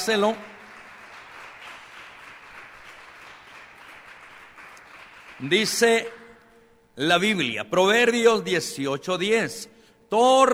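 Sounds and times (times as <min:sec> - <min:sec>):
speech: 0:00.0 - 0:00.5, 0:05.4 - 0:06.2, 0:07.0 - 0:10.5
crowd applauding: 0:00.0 - 0:06.4.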